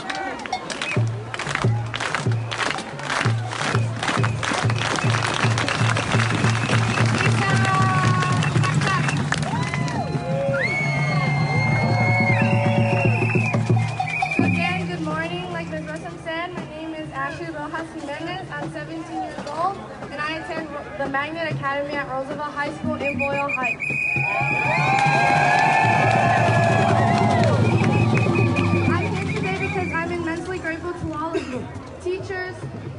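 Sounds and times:
crowd clapping in unison: 0:00.0 - 0:14.8, 0:24.2 - 0:30.0
excited crowd chatter: 0:00.0 - 0:24.1, 0:26.5 - 0:32.9
crowd cheering and whooping: 0:03.0 - 0:14.6, 0:24.0 - 0:29.9.

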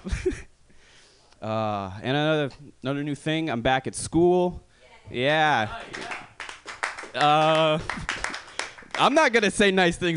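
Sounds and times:
speech: 0:01.4 - 0:06.1, 0:07.1 - 0:08.1, 0:09.0 - 0:10.1
audience clapping: 0:05.7 - 0:09.7.

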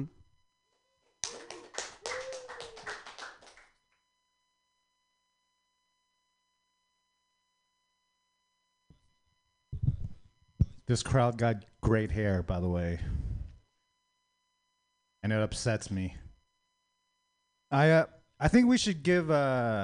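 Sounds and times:
audience clapping for comedian: 0:01.2 - 0:03.8
speech: 0:10.9 - 0:13.2, 0:15.2 - 0:16.3, 0:17.7 - 0:19.8.

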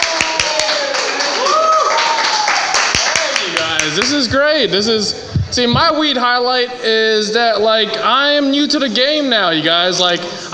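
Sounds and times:
audience clapping to welcome a performer: 0:00.0 - 0:04.3
speech: 0:03.9 - 0:10.5.

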